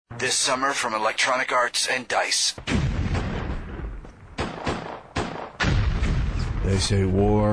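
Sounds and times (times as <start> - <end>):
speech: 0.1 - 2.8, 6.7 - 7.5
gunfire: 2.6 - 6.8
explosions: 2.6 - 7.3.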